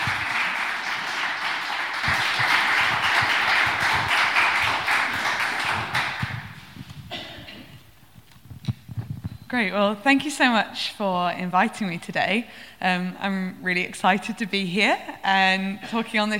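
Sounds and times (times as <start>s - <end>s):
audience applause welcoming a speaker to a charity talk: 0.0s - 6.6s
speech: 9.5s - 16.3s.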